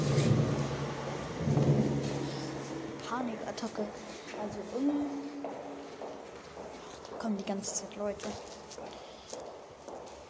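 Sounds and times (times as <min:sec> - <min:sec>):
train rumbling past: 0:00.0 - 0:06.8
speech: 0:03.1 - 0:05.4, 0:07.2 - 0:09.0.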